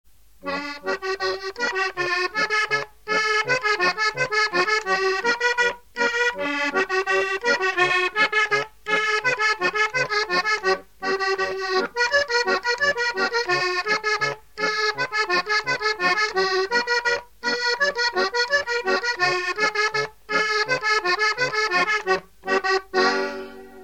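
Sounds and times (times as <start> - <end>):
polka music: 0.3 - 23.8.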